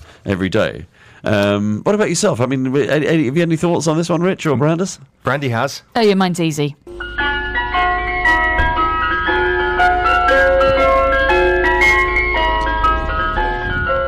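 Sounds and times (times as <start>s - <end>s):
speech: 0.2s - 7.0s
ice cream truck jingle: 6.9s - 14.0s.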